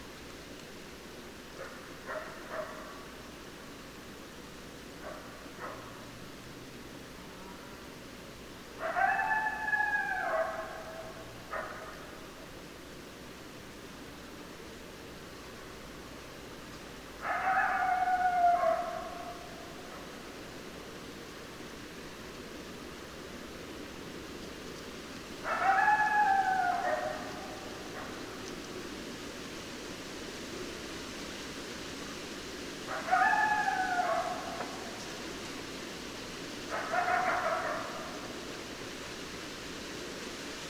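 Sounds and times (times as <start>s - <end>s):
hiss: 0.0s - 40.6s
coyote howling: 8.8s - 11.8s, 17.2s - 20.0s, 25.4s - 28.5s, 32.9s - 35.0s, 36.7s - 38.2s.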